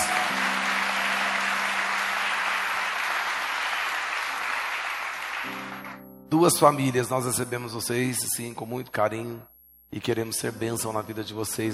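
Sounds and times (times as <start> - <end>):
round of applause: 0.0 - 6.0
speech: 6.3 - 11.7.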